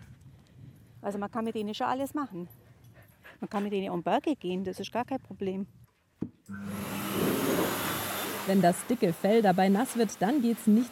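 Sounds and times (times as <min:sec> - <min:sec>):
speech: 0:01.0 - 0:02.6, 0:03.4 - 0:07.4, 0:08.5 - 0:10.9
dog blow dryer running: 0:06.5 - 0:10.9.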